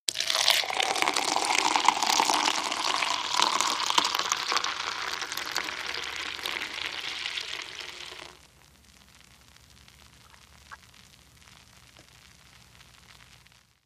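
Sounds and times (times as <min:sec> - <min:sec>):
beer pouring: 0:00.1 - 0:08.4.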